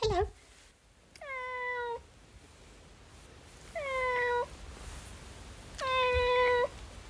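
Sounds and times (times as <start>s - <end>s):
cat meowing: 1.2s - 2.0s, 3.8s - 4.5s, 5.8s - 6.8s.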